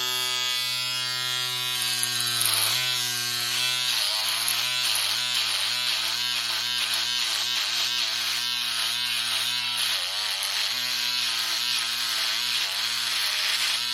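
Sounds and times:
electric shaver: 0:00.0 - 0:13.9.

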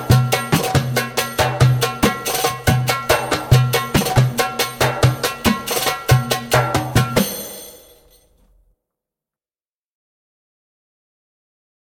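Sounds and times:
djembe drumming: 0:00.0 - 0:07.8.

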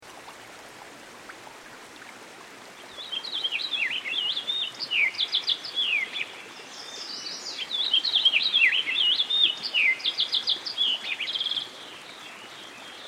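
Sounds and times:
American goldfinch twittering song beside a stream: 0:02.9 - 0:11.7.

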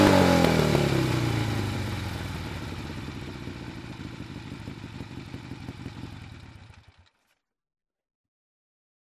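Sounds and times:
Harley motorcycle engine revving: 0:00.0 - 0:07.2.

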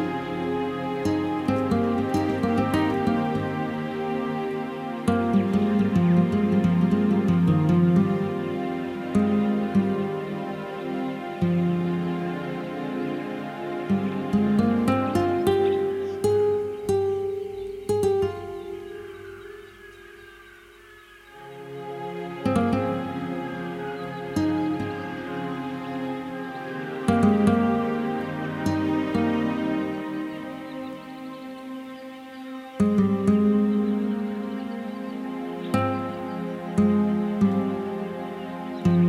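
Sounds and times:
Amazon rainforest ambience: 0:00.0 - 0:39.0.

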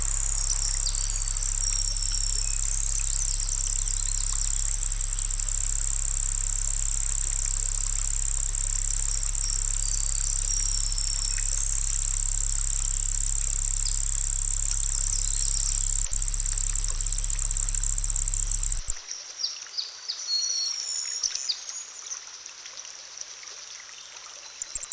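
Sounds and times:
crickets singing by a pond: 0:00.0 - 0:19.0, 0:24.7 - 0:24.9.

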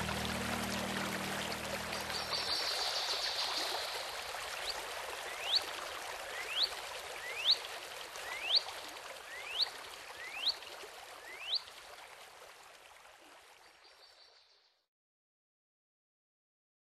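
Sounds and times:
Northern waterthrush: 0:00.0 - 0:14.4.

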